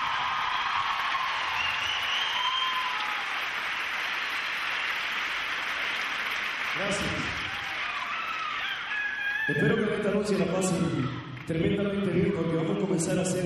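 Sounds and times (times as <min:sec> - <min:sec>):
audience applause for the musicians: 0:00.0 - 0:09.6
speech: 0:09.5 - 0:13.4.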